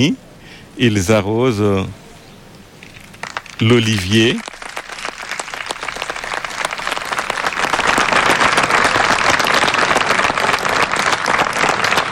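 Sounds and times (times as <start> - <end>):
speech: 0.0 - 0.2, 0.8 - 2.0, 3.6 - 4.5
staff applauding: 2.9 - 12.1.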